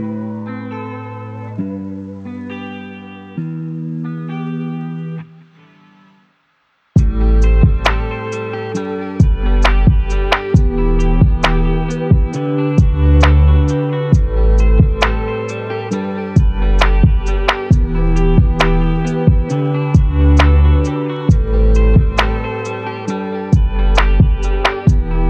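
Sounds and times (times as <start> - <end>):
lo-fi music: 7.0 - 25.2.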